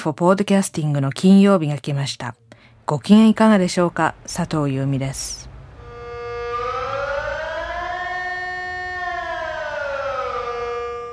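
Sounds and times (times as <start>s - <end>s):
speech: 0.0s - 5.5s
civil defense siren test across Switzerland: 5.6s - 11.1s.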